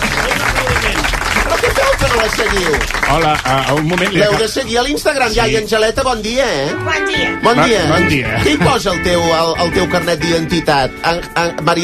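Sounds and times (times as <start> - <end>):
audience applauding a grandmother: 0.0 - 4.6
speech: 2.2 - 11.8.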